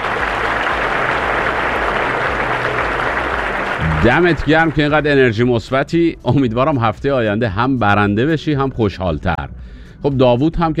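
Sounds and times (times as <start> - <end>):
applause: 0.0 - 5.4
speech: 4.0 - 10.7.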